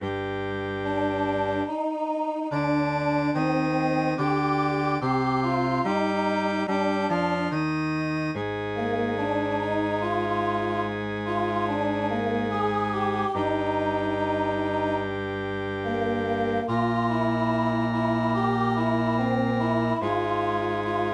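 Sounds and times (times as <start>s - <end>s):
MIDI music: 0.0s - 21.1s.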